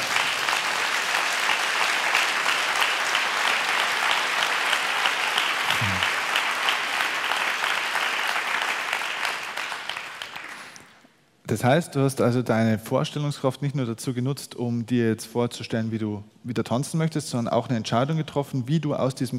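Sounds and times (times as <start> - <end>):
audience applause: 0.0 - 11.0
speech: 11.5 - 19.3.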